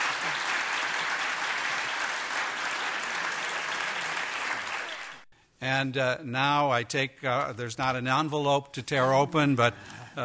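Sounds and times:
audience applause: 0.0s - 5.3s
speech: 5.6s - 10.2s.

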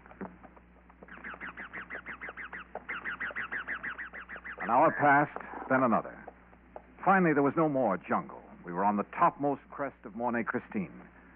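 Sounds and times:
wild parrots screeching overhead: 1.0s - 5.7s
speech: 4.7s - 6.2s, 7.0s - 11.1s.

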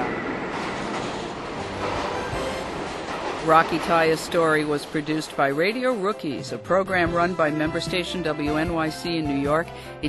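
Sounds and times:
subway train wheels clattering: 0.0s - 7.0s
New York City subway train on the R line rumbling: 0.0s - 9.2s
speech: 3.4s - 10.0s.

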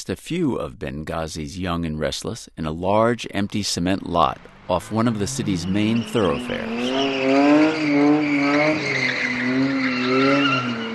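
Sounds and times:
speech: 0.0s - 9.7s
Toyota car engine roaring: 4.1s - 10.9s
Toyota car tires squealing on pavement in a cement lot in Benghazi: 4.3s - 10.9s.

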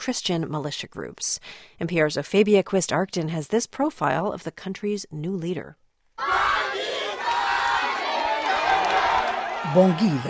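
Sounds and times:
speech: 0.0s - 5.8s, 9.6s - 10.2s
crowd cheering and applauding: 6.3s - 10.2s.

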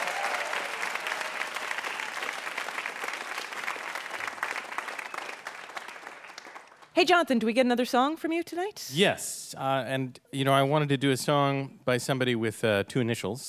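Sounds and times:
audience applause: 0.0s - 7.0s
speech: 7.0s - 13.4s.

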